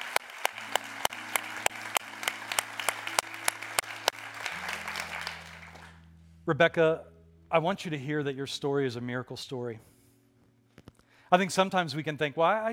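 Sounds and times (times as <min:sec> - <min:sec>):
audience applause: 0:00.0 - 0:06.0
speech: 0:06.5 - 0:09.9, 0:11.3 - 0:12.7.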